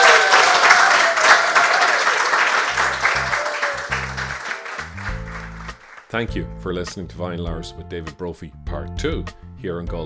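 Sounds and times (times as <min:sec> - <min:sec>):
audience round of applause: 0:00.0 - 0:06.1
speech: 0:06.1 - 0:10.0.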